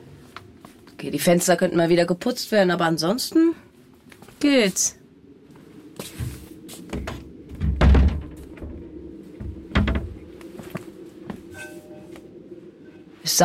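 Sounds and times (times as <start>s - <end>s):
speech: 1.0s - 3.6s, 4.4s - 5.0s
door closing: 6.9s - 10.3s.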